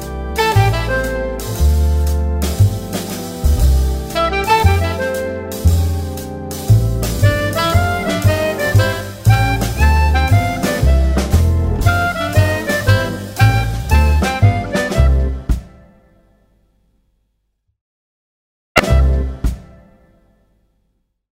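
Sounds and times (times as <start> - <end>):
orchestra improvising a song: 0.0 - 15.5.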